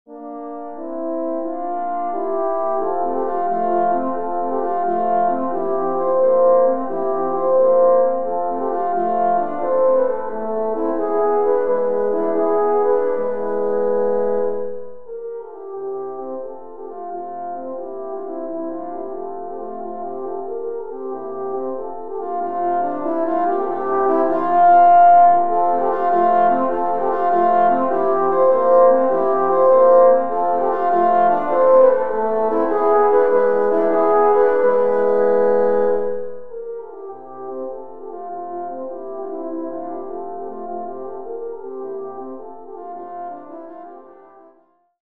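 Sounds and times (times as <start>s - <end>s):
horn quartet playing: 0.1s - 44.2s.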